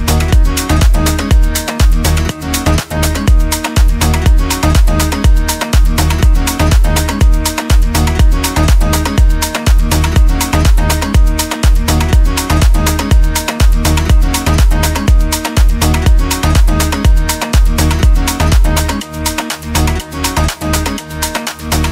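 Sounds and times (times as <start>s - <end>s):
afrohouse flamenco music: 0.0s - 21.8s.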